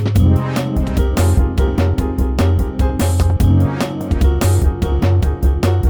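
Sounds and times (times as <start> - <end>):
jet ambience: 0.2 - 5.8.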